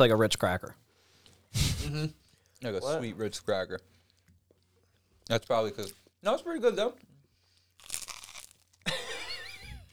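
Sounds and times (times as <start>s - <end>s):
speech: 0.0s - 0.9s, 1.5s - 4.0s, 5.3s - 7.1s
crunching bites into an English muffin: 7.8s - 8.6s.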